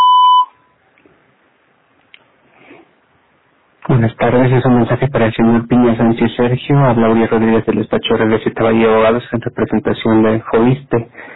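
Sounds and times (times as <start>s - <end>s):
voicemail beep tone: 0.0s - 0.7s
speech: 4.2s - 11.3s.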